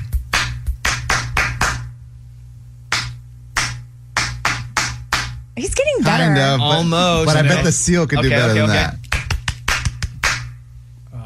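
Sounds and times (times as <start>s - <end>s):
hands clapping a rhythm: 0.0s - 1.9s, 2.9s - 5.4s, 9.0s - 10.6s
speech: 5.6s - 9.0s.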